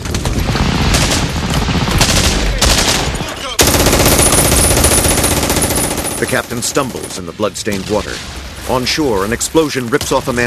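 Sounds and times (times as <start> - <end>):
German machine gun firing on a beach: 0.0 - 7.2
speech: 6.2 - 10.4.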